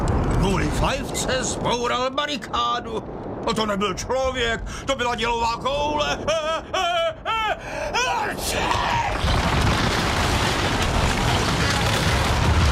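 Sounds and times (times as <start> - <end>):
speech: 0.8 - 9.4
sustained roaring noise: 8.4 - 12.7
ship's mast breaking crash in a radio drama: 9.1 - 12.7.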